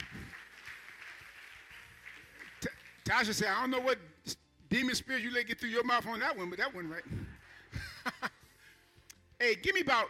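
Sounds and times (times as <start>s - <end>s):
audience clapping hands: 0.0s - 3.8s
speech: 2.6s - 7.2s, 9.4s - 10.0s.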